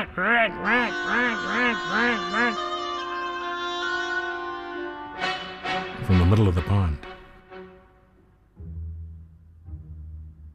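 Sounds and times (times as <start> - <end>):
reedy woodwind mimicking an angry duck: 0.0 - 5.8
orchestral music: 0.0 - 10.5
speech: 0.2 - 2.8, 6.1 - 7.1.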